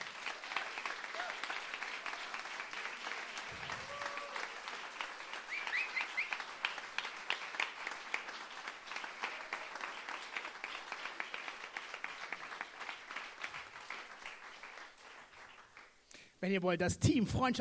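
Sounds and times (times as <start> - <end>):
crowd clapping to vote: 0.0 - 15.9
faint whistles and cheers: 0.5 - 2.5, 3.2 - 4.6, 5.3 - 6.5
speech: 16.4 - 17.5.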